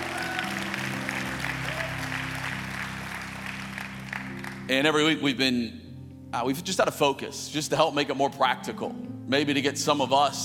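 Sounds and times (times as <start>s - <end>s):
audience applause: 0.0s - 4.7s
speech: 4.7s - 10.4s.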